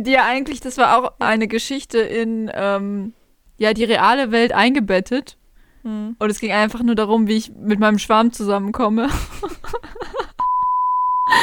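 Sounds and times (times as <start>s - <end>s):
speech: 0.0s - 10.1s
laughter: 9.1s - 10.5s
censor bleep: 10.4s - 11.3s.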